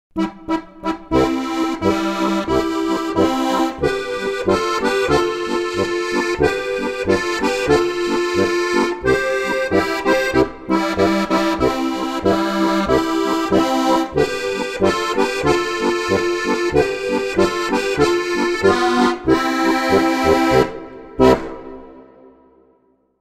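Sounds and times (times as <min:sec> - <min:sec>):
harmonica: 0:00.2 - 0:22.3.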